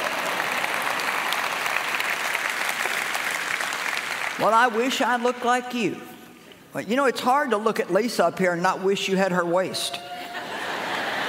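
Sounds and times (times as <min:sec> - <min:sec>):
audience clapping: 0:00.0 - 0:05.2
speech: 0:04.4 - 0:10.1
laughter: 0:10.1 - 0:11.2.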